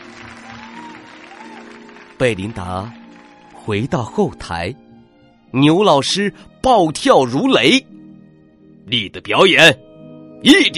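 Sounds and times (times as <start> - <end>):
crowd cheering: 0.0 - 3.9
applause: 0.0 - 4.0
speech: 2.2 - 3.0, 3.6 - 4.8, 5.5 - 8.0, 8.9 - 9.8, 10.4 - 10.7.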